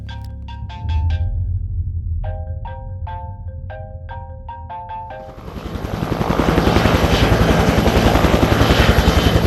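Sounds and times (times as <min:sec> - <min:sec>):
repeating electronic phone ringtone of short tone bursts: 0:00.0 - 0:01.4, 0:02.3 - 0:05.8
military helicopter flying low over a campground: 0:05.2 - 0:09.4.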